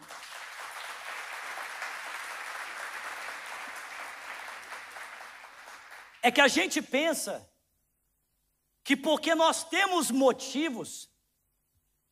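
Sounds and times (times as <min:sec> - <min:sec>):
audience applauding: 0:00.0 - 0:06.2
speech: 0:06.2 - 0:07.5, 0:08.9 - 0:11.1.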